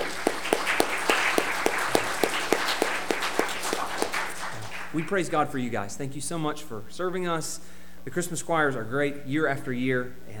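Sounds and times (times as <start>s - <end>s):
audience applauding: 0.0s - 5.2s
speech: 5.0s - 10.3s.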